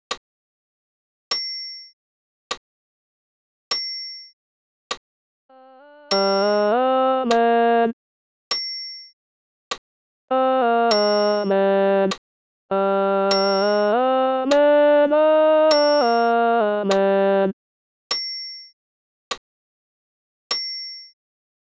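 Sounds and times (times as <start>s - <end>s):
solo alto voice singing a Credo: 5.5s - 8.0s, 10.3s - 17.6s.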